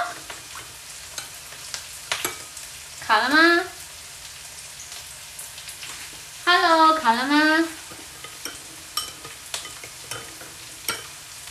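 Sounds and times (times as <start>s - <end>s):
dish frying in a pan: 0.0s - 11.4s
speech: 3.1s - 3.8s
clacks and scrapes from stirring starch into a dish in a pan: 7.9s - 11.2s.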